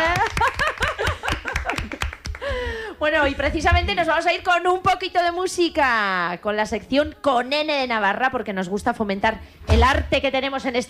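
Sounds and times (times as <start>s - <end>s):
people laughing: 0.0s - 2.6s
studio audience clapping: 0.0s - 2.7s
speech: 3.0s - 10.8s.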